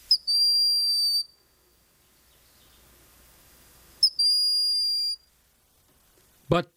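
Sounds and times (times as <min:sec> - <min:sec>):
broad-winged hawk whistled call: 0:00.0 - 0:01.4, 0:04.0 - 0:05.3.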